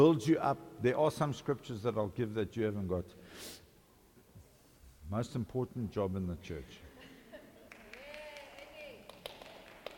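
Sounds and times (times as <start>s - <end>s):
speech: 0.0s - 3.6s, 5.1s - 6.9s
mom clapping: 7.7s - 9.9s.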